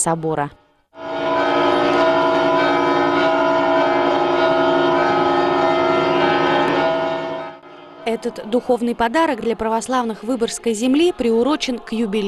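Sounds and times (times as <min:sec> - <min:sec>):
speech: 0:00.0 - 0:00.6, 0:08.1 - 0:12.2
solemn church bells ringing: 0:01.0 - 0:10.3.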